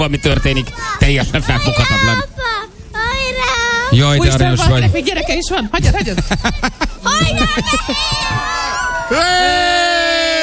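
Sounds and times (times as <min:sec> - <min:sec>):
speech: 0:00.0 - 0:02.5, 0:03.9 - 0:10.4
voices and bustle: 0:00.0 - 0:10.4
little girl shouting and wailing: 0:00.1 - 0:04.0, 0:07.0 - 0:10.4
laughter: 0:05.8 - 0:10.4.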